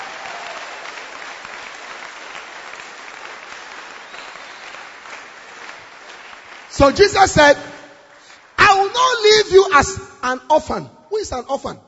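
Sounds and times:
audience applause: 0.0s - 8.8s
speech: 6.8s - 7.7s, 9.8s - 11.8s.

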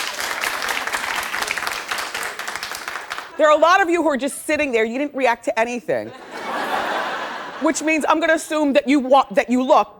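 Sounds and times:
crowd clapping: 0.0s - 3.4s
speech: 3.4s - 6.2s, 7.6s - 9.9s.

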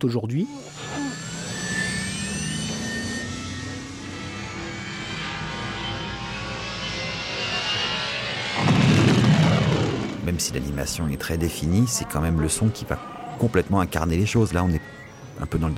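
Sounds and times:
speech: 0.0s - 0.9s, 10.3s - 15.7s
filtered engine noise: 0.7s - 10.3s.

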